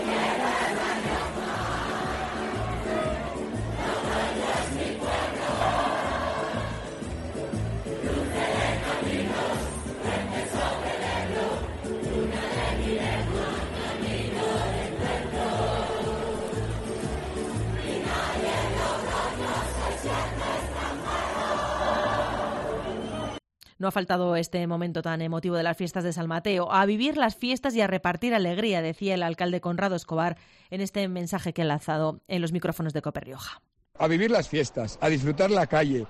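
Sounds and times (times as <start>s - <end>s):
crowd loudly singing city anthem in square: 0.0s - 23.4s
speech: 23.8s - 36.0s.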